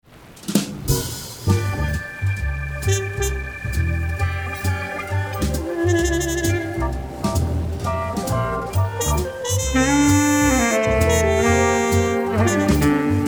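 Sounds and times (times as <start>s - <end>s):
denoised jazz music: 0.4s - 13.2s.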